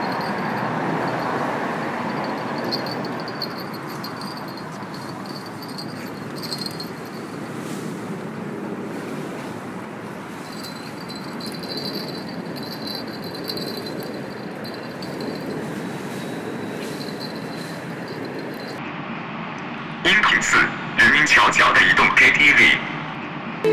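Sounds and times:
fishing bell beside Renmin Bridge in Guangzhou: 0.0 - 7.9, 10.3 - 18.8
traffic rumble at night in Guangzhou: 0.0 - 23.7.

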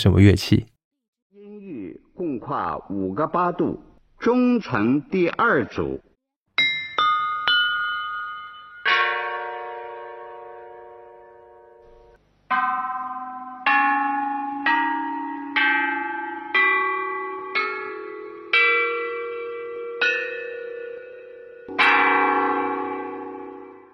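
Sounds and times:
speech: 0.0 - 0.7, 2.5 - 6.0
Marquis Yi of Zeng bianzhong Warring States bronze chime bells struck: 6.6 - 23.9.

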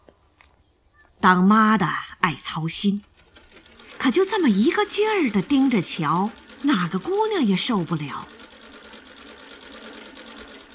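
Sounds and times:
speech: 1.2 - 3.1, 4.0 - 8.4
treadle sewing machine running: 2.4 - 10.7.

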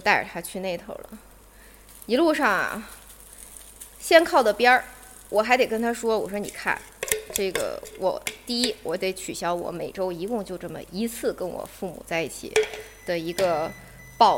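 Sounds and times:
speech: 0.0 - 1.3, 2.1 - 3.0, 4.0 - 14.3
baking tray clattering: 5.9 - 8.9, 12.5 - 13.7.

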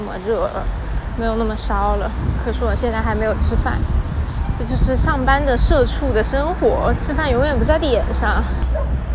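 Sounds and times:
speech: 0.1 - 8.7
dog barking: 8.6 - 9.0.

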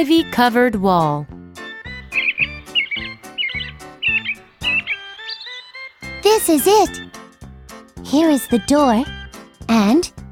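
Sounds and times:
speech: 0.0 - 1.4, 6.4 - 7.2, 8.0 - 10.2
birds singing in a garden: 1.6 - 7.4.

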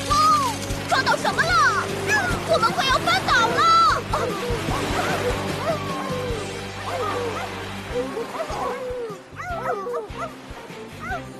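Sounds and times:
pack of sled dogs barking and yipping excitedly: 0.0 - 11.3
sled dogs whimpering and whining: 4.1 - 10.4.

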